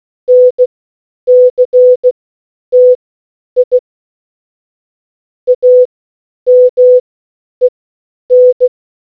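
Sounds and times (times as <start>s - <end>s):
morse code beeps: 0.3s - 0.6s, 1.3s - 2.1s, 2.8s - 3.0s, 5.5s - 5.9s, 6.5s - 7.0s, 8.3s - 8.7s.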